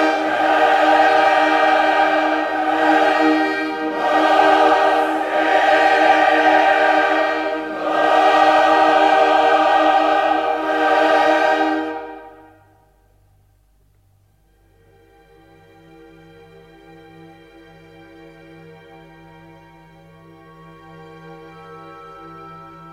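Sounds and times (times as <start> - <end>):
choir singing adagio: 0.0 - 12.7.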